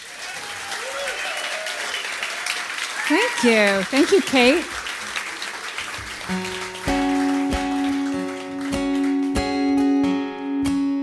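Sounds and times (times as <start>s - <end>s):
faint cheers: 0.0s - 4.7s
concert audience applauding to welcome a performer: 0.0s - 10.2s
speech: 3.1s - 4.8s, 6.3s - 6.6s.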